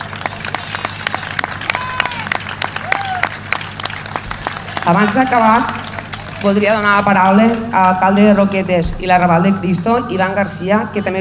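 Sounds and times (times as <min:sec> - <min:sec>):
applause: 0:00.0 - 0:07.4
speech: 0:04.8 - 0:05.8, 0:06.4 - 0:11.1.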